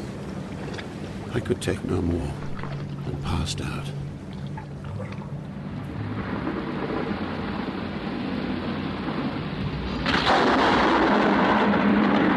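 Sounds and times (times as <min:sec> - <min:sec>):
speech: 0:01.3 - 0:02.5, 0:03.2 - 0:04.0
mighty thunderclap: 0:05.9 - 0:12.3.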